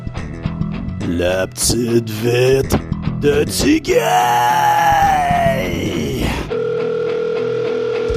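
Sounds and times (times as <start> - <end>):
speech: 1.0 - 6.0
steady electronic telephone line tone while a number is dialed: 6.5 - 8.1.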